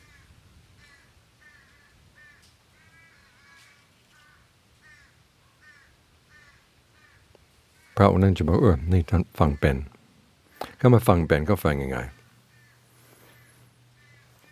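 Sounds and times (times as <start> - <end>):
crows cawing: 0.0 - 10.8, 11.9 - 14.5
speech: 8.0 - 10.0, 10.8 - 12.2.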